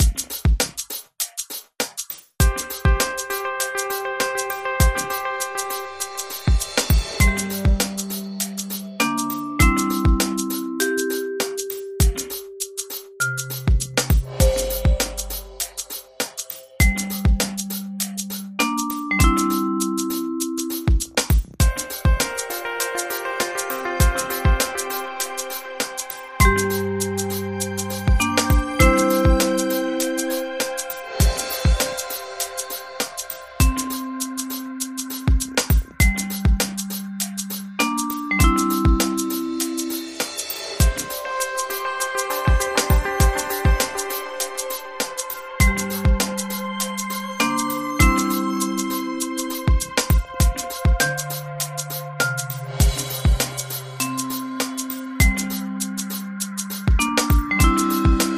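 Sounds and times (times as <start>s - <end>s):
trip vibraphone: 2.4s - 58.3s.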